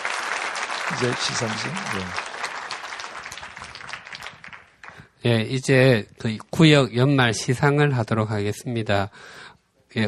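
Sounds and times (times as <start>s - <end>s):
audience applause at a church year-end awards ceremony: 0.0s - 5.0s
speech: 0.9s - 2.3s, 5.2s - 10.0s.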